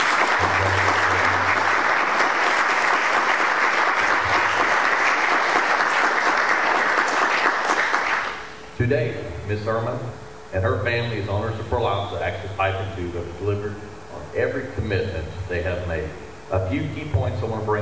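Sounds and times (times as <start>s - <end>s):
audience applause: 0.0s - 8.5s
speech: 8.8s - 17.7s.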